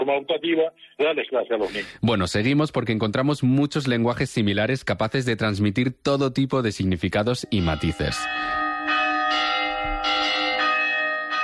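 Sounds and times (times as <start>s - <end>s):
speech: 0.1s - 9.5s
church bells ringing: 7.4s - 11.4s.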